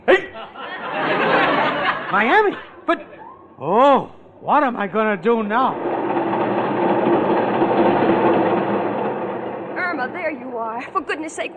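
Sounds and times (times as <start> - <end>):
laughter: 0.0 - 3.4
speech: 2.1 - 5.9, 10.3 - 11.5
train running: 4.9 - 11.5.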